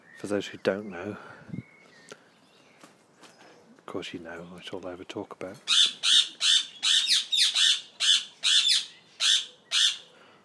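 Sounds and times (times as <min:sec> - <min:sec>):
speech: 0:00.2 - 0:01.6, 0:03.9 - 0:06.0
birds squawking in an enclosure: 0:05.6 - 0:10.2.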